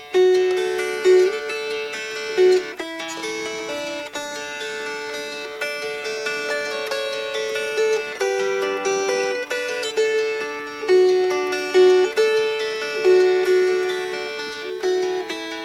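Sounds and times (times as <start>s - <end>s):
fingerpicked guitar: 0.0s - 15.6s.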